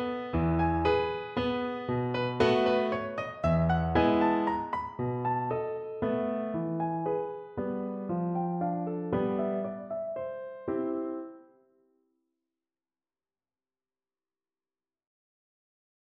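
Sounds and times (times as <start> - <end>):
mazurka in C on piano: 0.0 - 11.6.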